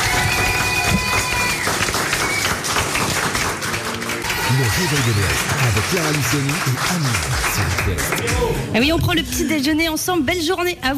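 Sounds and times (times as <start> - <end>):
roar of a live concert crowd: 0.0 - 2.5, 4.2 - 6.1
scattered clapping: 0.0 - 8.5
speech: 4.6 - 10.9.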